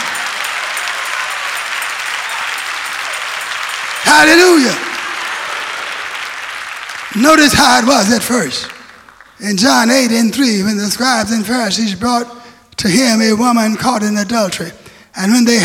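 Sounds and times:
audience clapping hands: 0.0s - 10.3s
speech: 4.1s - 4.9s, 7.2s - 8.8s, 9.4s - 15.6s.

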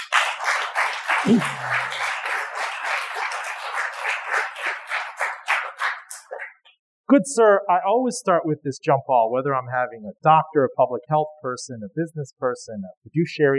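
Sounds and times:
audience applause welcoming Richmond Fed President Tom Barkin: 0.0s - 6.2s
speech: 1.2s - 1.7s, 7.1s - 13.5s.

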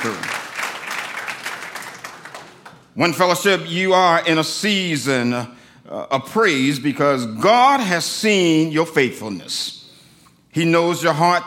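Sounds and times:
speech: 0.0s - 0.4s, 3.0s - 9.8s, 10.6s - 11.4s
audience clapping hands: 0.0s - 3.0s.

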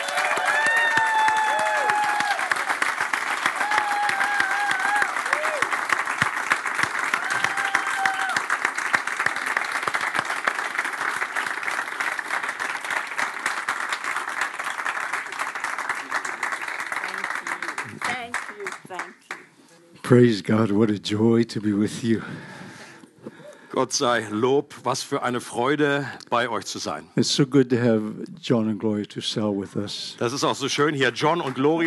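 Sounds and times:
faint whoops and raised voices: 0.0s - 2.5s, 3.6s - 5.7s, 7.2s - 8.4s
audience applause: 0.0s - 19.5s, 30.9s - 31.8s
speech: 20.1s - 22.6s, 23.8s - 31.8s.

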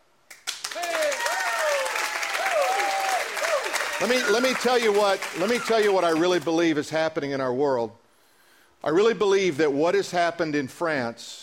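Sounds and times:
audience applause: 0.4s - 6.6s
voices whooping and cheering: 0.7s - 6.2s
speech: 4.0s - 8.0s, 8.8s - 11.4s.

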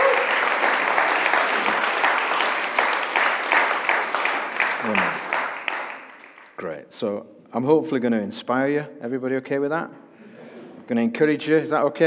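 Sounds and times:
audience applause: 0.0s - 6.5s
speech: 7.0s - 10.0s, 10.9s - 12.0s.

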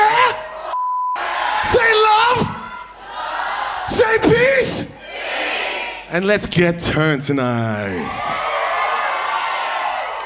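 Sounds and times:
live audience cheering and shouting: 0.0s - 6.1s, 7.7s - 10.2s
short steady beep: 0.8s - 1.2s
speech: 6.1s - 8.4s.

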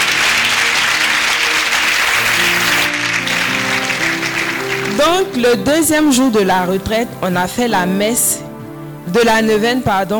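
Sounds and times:
church congregation applauding God during a retreat: 0.0s - 6.0s
speech: 5.1s - 8.5s, 9.1s - 10.1s.

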